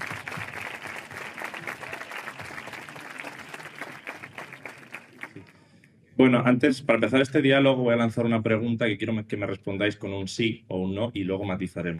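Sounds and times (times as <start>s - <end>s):
audience applause: 0.0s - 5.5s
speech: 6.2s - 11.9s.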